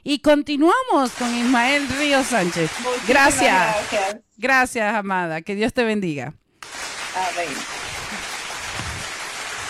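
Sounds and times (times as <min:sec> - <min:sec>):
speech: 0:00.0 - 0:06.4, 0:07.2 - 0:07.8
crowd applauding: 0:01.1 - 0:04.2, 0:06.6 - 0:09.6.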